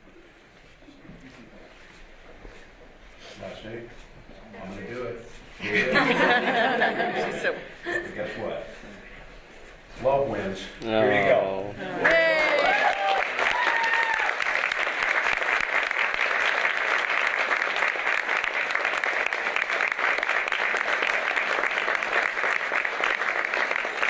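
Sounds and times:
speech: 0:03.6 - 0:04.1, 0:10.0 - 0:12.2
laughter: 0:05.6 - 0:08.6
faint cheers: 0:12.0 - 0:14.5
crowd applauding: 0:12.0 - 0:24.0.

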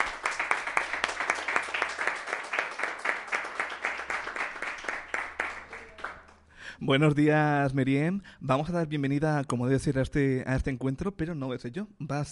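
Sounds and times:
school audience applause: 0:00.0 - 0:06.4
speech: 0:06.8 - 0:12.3.

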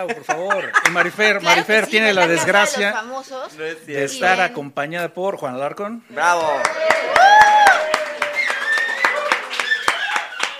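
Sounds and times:
laughter: 0:00.0 - 0:02.9
speech: 0:00.0 - 0:07.6
applause: 0:06.4 - 0:10.5.

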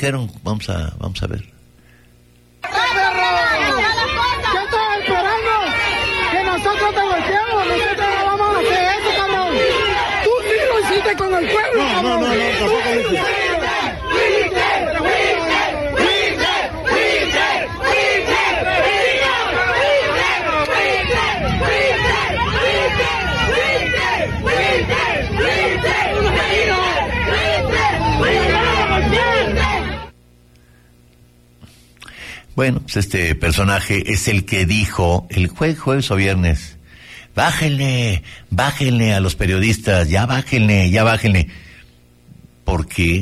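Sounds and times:
speech: 0:00.0 - 0:01.6, 0:32.6 - 0:36.8, 0:37.4 - 0:41.6, 0:42.7 - 0:43.2
protesters shouting at departing official: 0:02.6 - 0:30.2.

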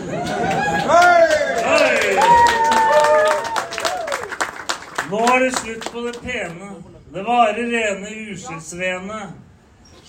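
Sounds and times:
voices whooping and calling out: 0:00.0 - 0:04.4
crowd applauding: 0:00.0 - 0:06.6
speech: 0:05.4 - 0:09.4.

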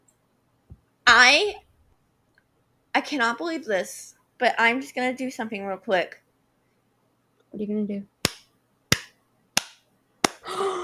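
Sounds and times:
speech: 0:01.2 - 0:01.6, 0:03.0 - 0:06.2, 0:07.6 - 0:08.1
hand claps: 0:08.2 - 0:10.8.

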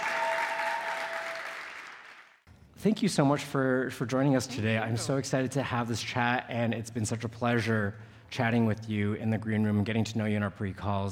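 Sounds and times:
audience applause welcoming two guests on stage: 0:00.0 - 0:02.4
speech: 0:02.8 - 0:11.1.

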